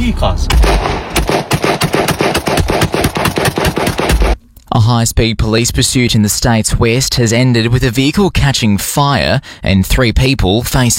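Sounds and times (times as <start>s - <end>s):
speech: 0.1s - 1.2s, 4.8s - 10.9s
rapid gunshots from a drive-by shooting: 0.5s - 4.4s.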